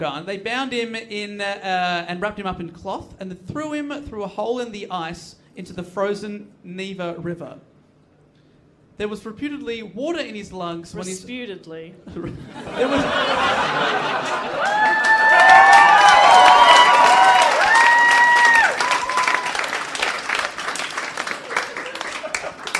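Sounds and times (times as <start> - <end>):
speech: 0.0 - 7.7, 9.0 - 16.5
laughter: 12.2 - 15.1, 21.4 - 22.7
live audience standing ovation applause: 13.7 - 22.7
loud cheering and high whoops: 14.4 - 19.8.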